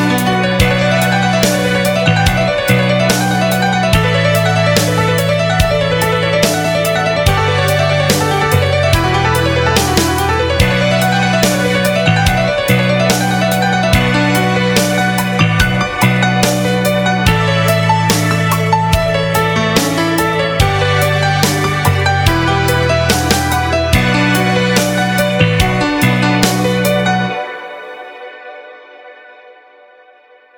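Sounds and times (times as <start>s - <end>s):
shred guitar exercise backing track: 0.0s - 27.7s.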